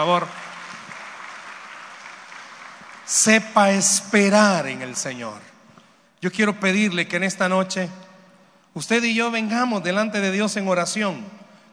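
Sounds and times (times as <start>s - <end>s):
speech: 0.0s - 0.4s, 3.1s - 5.5s, 6.2s - 8.0s, 8.7s - 11.4s
audience applause: 0.0s - 3.9s.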